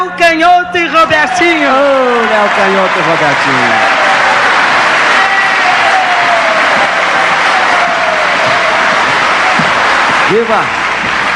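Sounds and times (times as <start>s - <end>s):
speech: 0.7s - 4.0s, 10.3s - 10.8s
audience applause: 1.2s - 11.3s.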